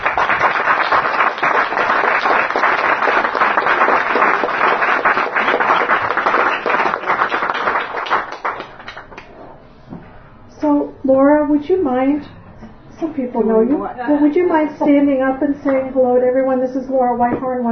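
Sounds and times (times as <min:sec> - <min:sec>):
audience applause: 0:00.0 - 0:09.3
speech: 0:11.6 - 0:12.3, 0:13.0 - 0:17.6.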